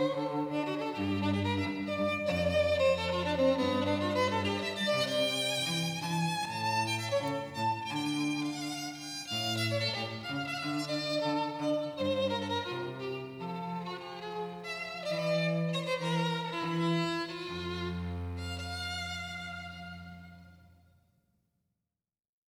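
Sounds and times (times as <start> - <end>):
song for duet of violin and cello: 0.0 - 20.6.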